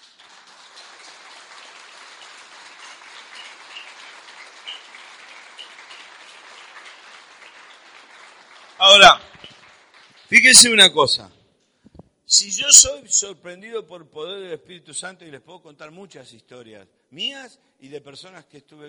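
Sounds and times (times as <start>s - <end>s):
audience applauding: 0.0s - 11.2s
speech: 8.8s - 9.3s, 10.3s - 11.4s, 12.3s - 18.8s.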